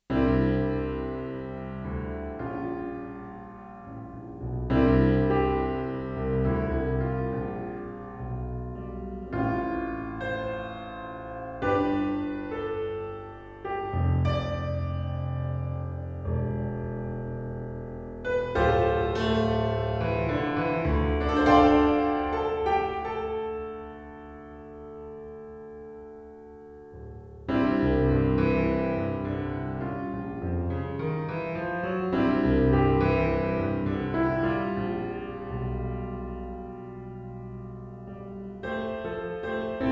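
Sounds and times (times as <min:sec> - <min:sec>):
pop piano: 0:00.0 - 0:39.9.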